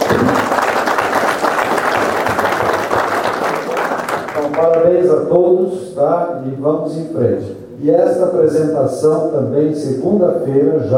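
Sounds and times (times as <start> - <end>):
group of people applauding: 0.0 - 5.0
speech: 4.8 - 10.9.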